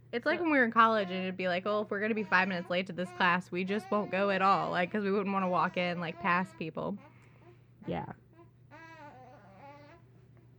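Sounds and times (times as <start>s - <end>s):
low steady hum: 0.0s - 10.5s
speech: 0.1s - 7.1s, 7.8s - 8.2s
baby babbling and fussing: 8.7s - 10.0s.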